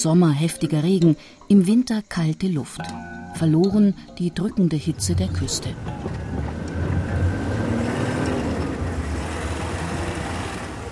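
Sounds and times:
speech: 0.0 - 6.2
jeep driving over rough pothole road: 4.9 - 10.9.

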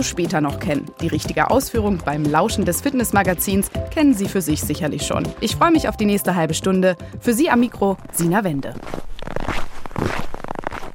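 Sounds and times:
speech: 0.0 - 9.1
footsteps crunching in snow: 7.6 - 10.9.

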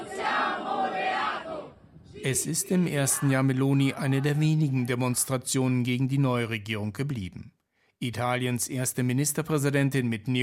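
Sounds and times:
protest crowd chanting slogans: 0.0 - 5.3
speech: 2.2 - 10.4.

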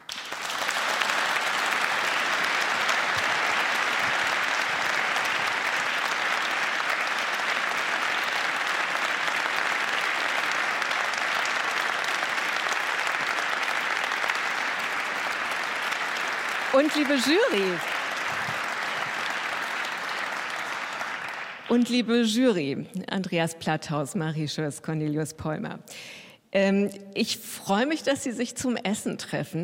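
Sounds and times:
audience applause: 0.0 - 21.9
speech: 16.8 - 18.0, 21.7 - 29.6.

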